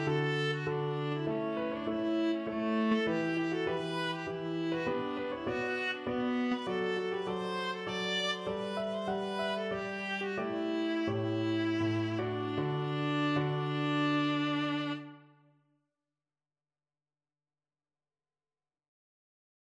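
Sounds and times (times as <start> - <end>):
viola playing a chaconne: 0.0 - 15.5.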